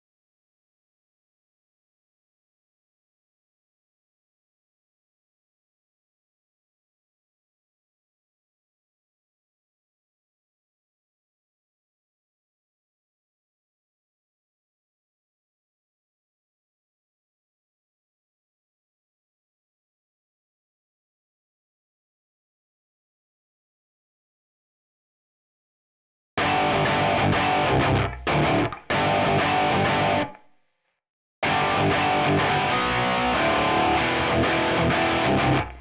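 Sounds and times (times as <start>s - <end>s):
backing guitar: 26.4s - 30.4s, 31.4s - 35.7s.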